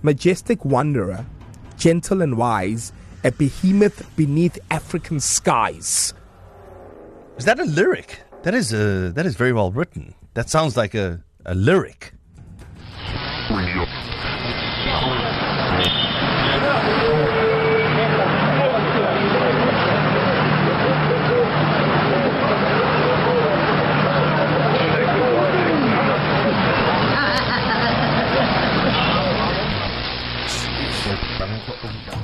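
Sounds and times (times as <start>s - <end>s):
speech: 0.0s - 6.2s, 7.4s - 12.2s, 13.5s - 15.2s
crowd chatter in a busy public space: 13.5s - 32.2s
person laughing: 27.2s - 29.3s.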